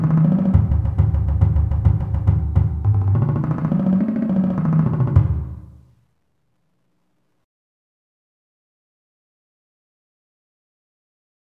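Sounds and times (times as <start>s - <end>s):
marching bass drums playing split eighth notes as warm-ups: 0.0s - 5.7s.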